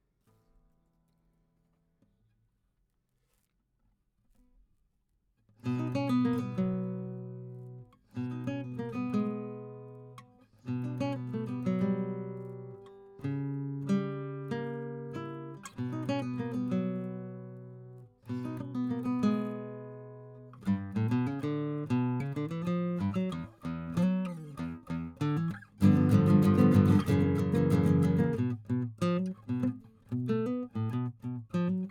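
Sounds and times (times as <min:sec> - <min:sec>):
guitar: 0:05.5 - 0:31.8.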